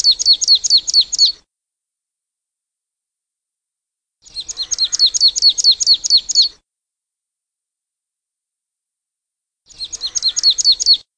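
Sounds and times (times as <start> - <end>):
marsh tit singing rapid high chipping notes: 0.0 - 1.4, 4.2 - 6.6, 9.7 - 11.1.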